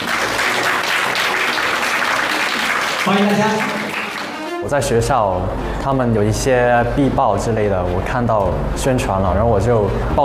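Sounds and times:
audience applause welcoming the Hong Kong team: 0.0 - 4.6
speech: 3.1 - 3.8, 4.6 - 10.2.

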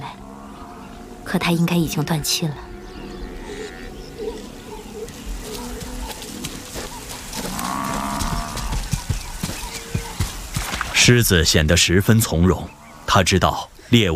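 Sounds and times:
African buffalo herd calling: 0.0 - 10.6
speech: 1.3 - 2.7, 11.1 - 14.1.

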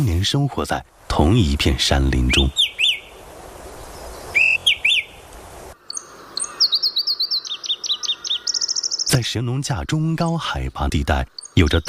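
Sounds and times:
speech: 0.0 - 2.6, 9.2 - 11.8
soft hissing background: 0.0 - 6.4
bright high-pitched bird chirps: 2.2 - 3.2, 3.8 - 11.8.

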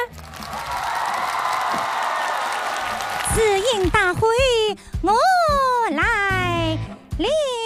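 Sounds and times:
audience applause: 0.0 - 4.0
speech: 3.4 - 7.5.

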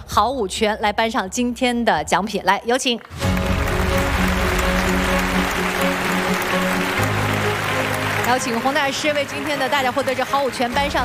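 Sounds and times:
music: 0.0 - 11.0
speech: 0.2 - 3.2, 8.3 - 11.0
audience applause: 3.1 - 11.0.

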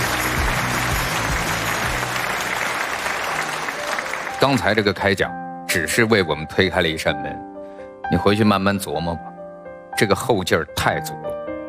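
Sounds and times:
audience applause: 0.0 - 4.9
speech: 4.4 - 7.5, 8.1 - 9.3, 10.0 - 11.4.

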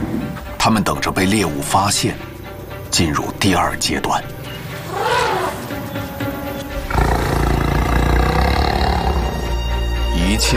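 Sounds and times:
speech: 0.7 - 2.3, 3.0 - 4.4, 10.3 - 10.5
lions roaring: 4.5 - 10.5.

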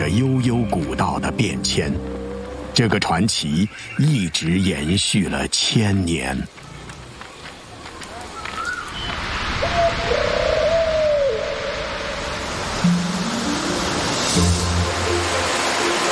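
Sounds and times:
speech: 0.0 - 2.2, 2.8 - 6.6
stream cascading downhill: 0.0 - 5.6, 9.0 - 16.1
birdsong: 0.0 - 10.2
low dove-like coos: 9.6 - 11.6.

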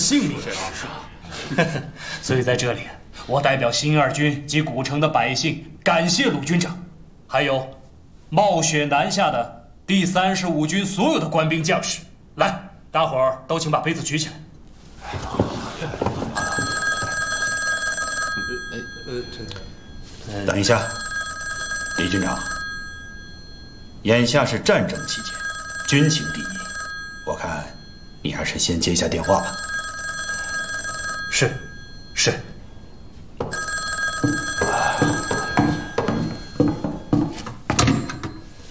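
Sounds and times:
speech: 0.1 - 14.4, 20.3 - 21.0, 22.0 - 22.5, 24.0 - 26.5, 27.2 - 29.6, 31.3 - 31.6, 32.2 - 32.5
telephone ringing: 15.3 - 38.6.

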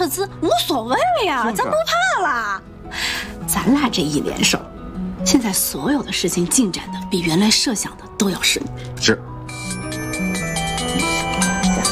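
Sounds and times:
speech: 0.0 - 9.3
mobile phone ringtone with a melodic electronic tune: 9.4 - 11.9.

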